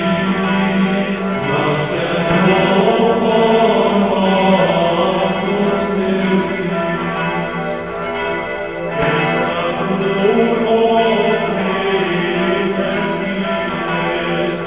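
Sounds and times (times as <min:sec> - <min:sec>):
bells ringing: 0:00.0 - 0:14.6
choir singing a chorale: 0:00.8 - 0:06.8, 0:09.0 - 0:14.6.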